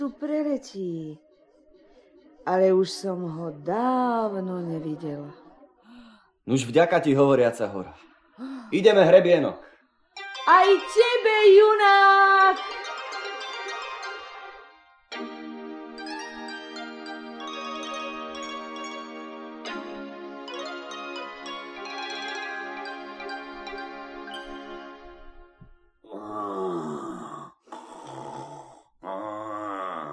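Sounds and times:
speech: 0.1s - 1.3s, 2.4s - 5.4s, 6.4s - 9.7s, 10.4s - 12.8s
sustained chord-like music: 12.1s - 25.5s
dragon snoring loudly: 26.4s - 30.1s.

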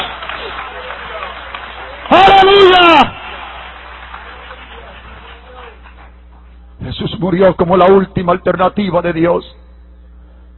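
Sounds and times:
audience applause: 0.0s - 6.4s
speech: 7.2s - 9.6s.

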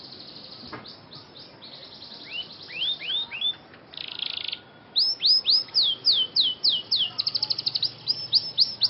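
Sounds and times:
Scotch Fancy canary singing with rapid rattling trills and swept whistles: 0.0s - 8.8s.

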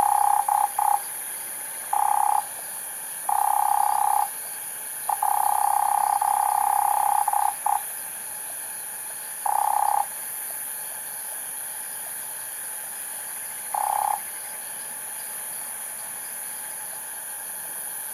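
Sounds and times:
cane toads trilling: 0.0s - 1.2s, 1.9s - 2.6s, 3.2s - 4.4s, 5.0s - 7.9s, 9.4s - 10.1s, 13.7s - 14.5s
faint insect hiss: 0.0s - 18.1s.

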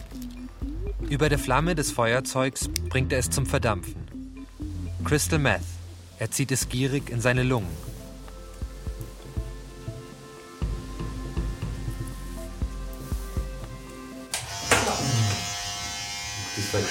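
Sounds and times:
speech: 1.0s - 4.1s, 5.0s - 7.9s
rustling burst: 5.8s - 14.2s
electric clippers shaving a man's head: 14.3s - 16.9s.

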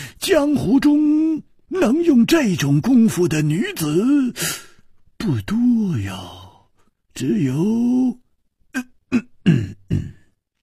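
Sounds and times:
speech: 0.2s - 6.4s, 7.2s - 10.1s
person coughing: 9.1s - 10.3s.

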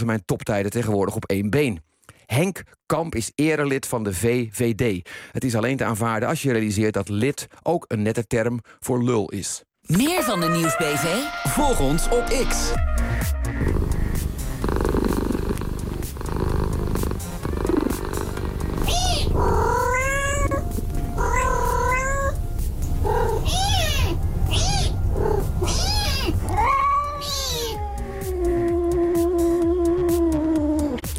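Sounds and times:
speech: 0.0s - 13.7s
cat purring: 13.6s - 29.3s
cat meowing: 17.2s - 22.4s, 23.0s - 31.0s.

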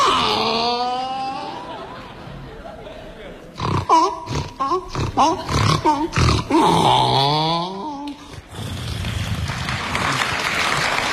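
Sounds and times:
man imitating a donkey braying: 0.0s - 1.7s, 3.6s - 8.2s
laughter: 0.0s - 6.6s
audience applause: 8.8s - 11.1s.

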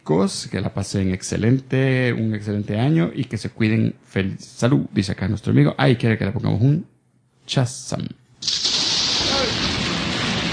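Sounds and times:
speech: 0.1s - 6.9s, 7.5s - 8.2s
thunder sound effect: 8.4s - 10.5s.

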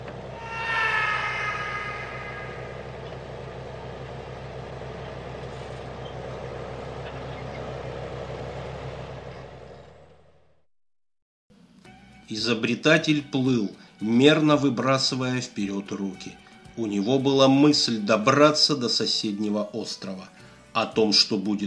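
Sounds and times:
engine roaring to life: 0.0s - 10.6s
speech: 12.3s - 21.6s.

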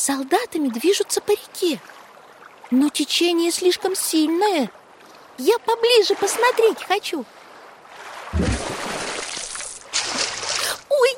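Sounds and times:
speech: 0.0s - 2.0s, 2.7s - 4.8s, 5.4s - 7.4s, 8.3s - 8.5s
foot splashing into water: 8.0s - 10.8s.

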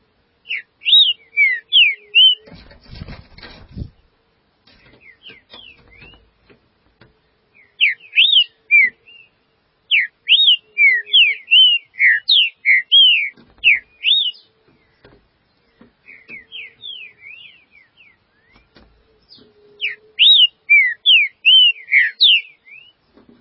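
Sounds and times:
green-winged saltator song of slurred whistles: 0.4s - 2.5s, 5.0s - 6.2s, 7.6s - 14.9s, 16.0s - 23.0s.

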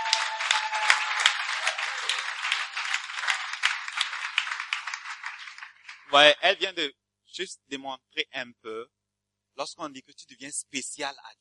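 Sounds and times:
audience applause for a woman: 0.0s - 6.5s
speech: 6.1s - 9.0s, 9.6s - 11.3s.

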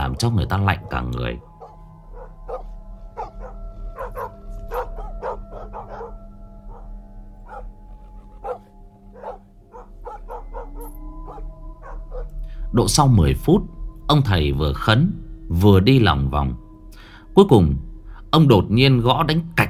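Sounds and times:
distant dog barking by a riverbank: 0.0s - 12.3s
speech: 0.1s - 1.5s, 12.8s - 16.6s, 17.4s - 19.6s
constant low droning hum: 1.0s - 15.6s.

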